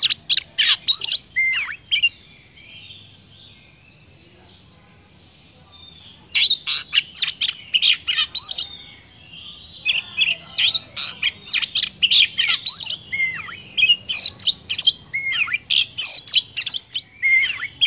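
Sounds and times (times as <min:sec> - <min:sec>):
Oriental magpie-robin singing: 0:00.0 - 0:17.8.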